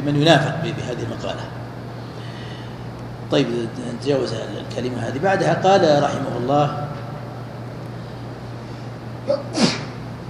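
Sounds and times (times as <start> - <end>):
speech: 0.0 - 1.6, 3.3 - 6.8
sneeze: 9.3 - 10.0.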